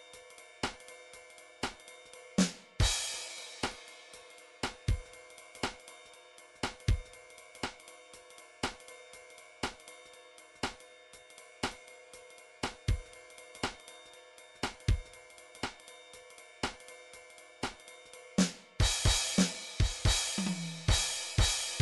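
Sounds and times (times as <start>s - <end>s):
jazz swing ride cymbal drum pattern in half time: 0.0s - 21.8s.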